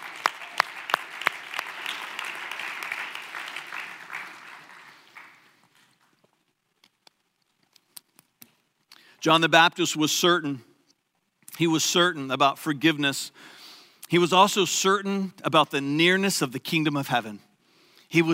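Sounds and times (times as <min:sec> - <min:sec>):
audience applause: 0:00.0 - 0:06.1
speech: 0:09.2 - 0:10.7, 0:11.6 - 0:17.5, 0:18.1 - 0:18.3.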